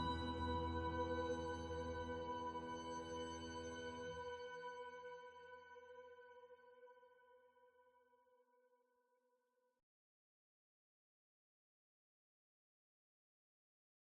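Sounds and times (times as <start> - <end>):
ambience: 0.0 - 4.7.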